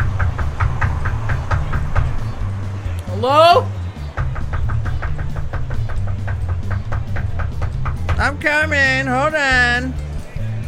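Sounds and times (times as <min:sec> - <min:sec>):
knocking on a door: 0:00.0 - 0:02.2, 0:04.2 - 0:08.5
speech: 0:03.2 - 0:03.7, 0:08.2 - 0:10.0.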